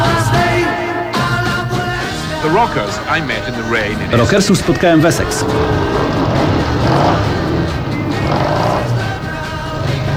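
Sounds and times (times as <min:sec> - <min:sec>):
rocker's motorbike engine revving in Essex: 0:00.0 - 0:10.1
speech: 0:02.5 - 0:07.4.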